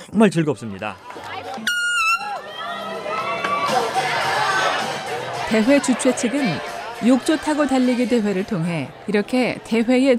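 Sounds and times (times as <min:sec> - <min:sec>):
speech: 0:00.1 - 0:01.7, 0:05.5 - 0:10.1
spectators cheering at outdoor bathtub race: 0:00.6 - 0:10.1
whistle-like cry: 0:01.6 - 0:02.4.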